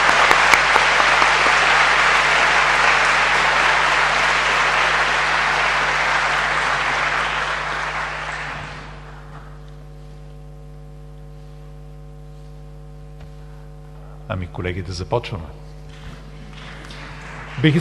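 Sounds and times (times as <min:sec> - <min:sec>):
audience applause at an award ceremony: 0:00.0 - 0:09.7, 0:15.9 - 0:17.7
speech: 0:14.6 - 0:15.6.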